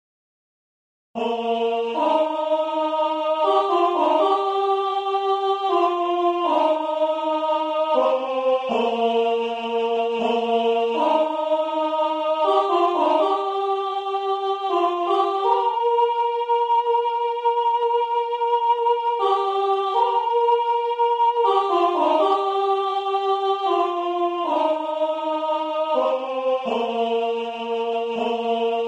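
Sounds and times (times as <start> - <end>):
soprano choir singing a hymn: 1.2 - 28.8.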